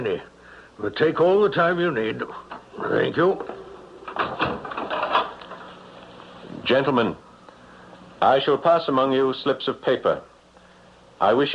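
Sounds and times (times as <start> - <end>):
speech: 0.0 - 3.6, 6.6 - 7.2, 8.2 - 10.3, 11.2 - 11.5
door swinging: 3.4 - 5.7.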